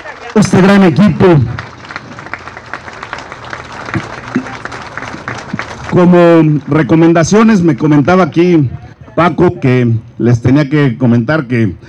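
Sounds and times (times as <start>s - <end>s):
crowd applause for a work team: 0.0s - 9.4s
speech: 0.4s - 1.6s, 6.0s - 11.8s.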